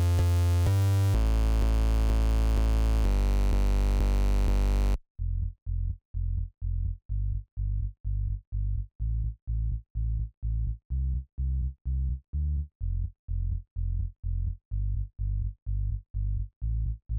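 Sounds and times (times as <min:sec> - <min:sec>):
music verse: 0:00.0 - 0:05.0
bass drop: 0:00.0 - 0:17.1.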